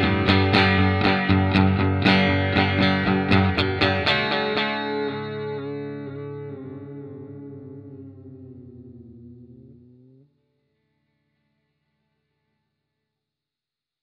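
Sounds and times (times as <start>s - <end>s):
rock music with reverb: 0.0s - 10.2s.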